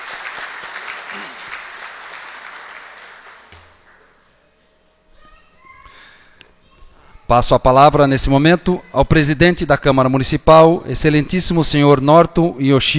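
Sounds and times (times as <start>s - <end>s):
audience applause: 0.0s - 4.1s
speech: 7.3s - 12.9s.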